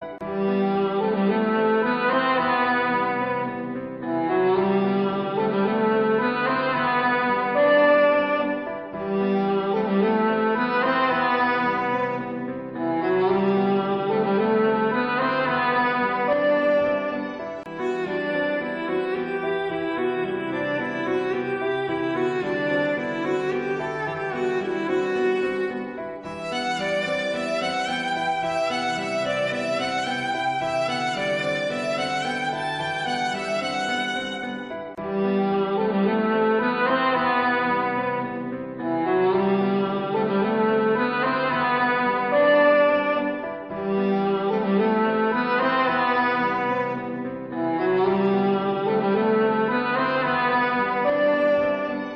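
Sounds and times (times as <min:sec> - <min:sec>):
sad background music ringtone: 0:00.1 - 0:52.1.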